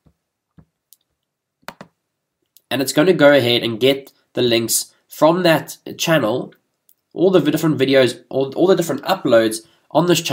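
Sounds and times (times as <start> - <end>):
computer mouse clicks as a button is selected in software: 0.6 - 2.7
speech: 2.7 - 10.3.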